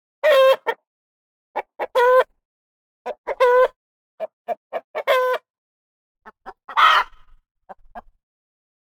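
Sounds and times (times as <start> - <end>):
chicken clucking: 0.2 - 0.8, 1.6 - 2.3, 3.1 - 5.5, 6.2 - 8.2.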